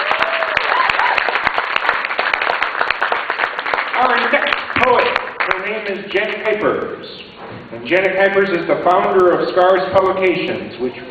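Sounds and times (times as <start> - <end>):
audience applause: 0.0 - 5.8
speech: 5.9 - 11.0.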